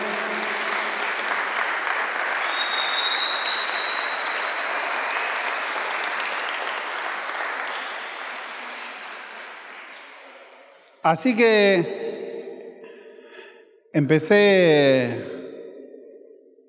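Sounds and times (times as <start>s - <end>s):
audience applause: 0.0s - 10.6s
speech: 11.0s - 12.0s, 14.0s - 15.3s.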